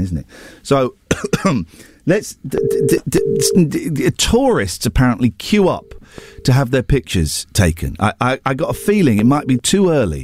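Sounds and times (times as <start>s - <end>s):
speech: 0.0s - 10.2s
ringing tone of a call to a public phone box outside Parliament in London: 2.6s - 3.6s, 5.6s - 6.6s, 8.6s - 9.6s.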